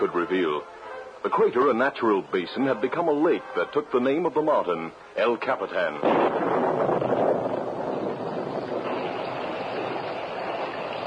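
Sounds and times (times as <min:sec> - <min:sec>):
speech: 0:00.0 - 0:07.1
steady rain falling: 0:00.0 - 0:11.0
intermittent thunder: 0:06.0 - 0:11.0.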